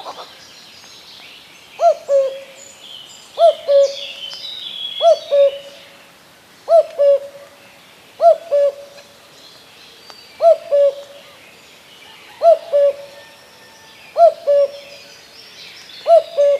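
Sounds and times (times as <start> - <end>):
common cuckoo giving two-note cu-coo calls: 1.8 - 2.6, 3.4 - 6.0, 6.7 - 7.6, 8.2 - 9.1, 10.4 - 11.4, 12.0 - 15.2, 16.0 - 16.5.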